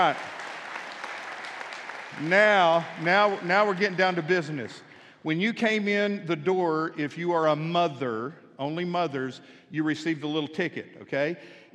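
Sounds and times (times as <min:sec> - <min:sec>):
speech: 0:00.0 - 0:00.4, 0:02.1 - 0:11.6
audience applause: 0:00.0 - 0:04.6.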